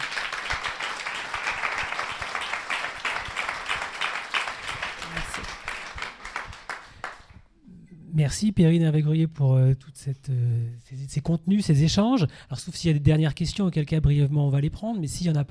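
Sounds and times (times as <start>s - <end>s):
audience applause: 0.0s - 7.3s
speech: 8.2s - 15.4s.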